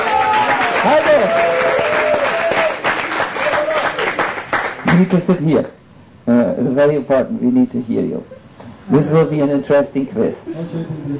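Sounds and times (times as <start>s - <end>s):
audience applause: 0.0s - 5.1s
speech: 0.8s - 1.6s, 5.0s - 11.1s.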